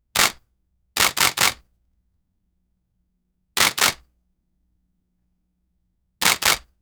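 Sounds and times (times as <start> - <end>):
cameras taking photographs: 3.6 - 4.0, 6.2 - 6.6.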